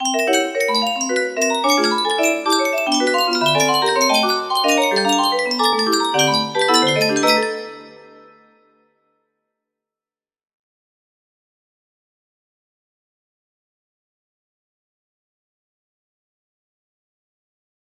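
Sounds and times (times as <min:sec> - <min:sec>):
music box: 0:00.0 - 0:08.6.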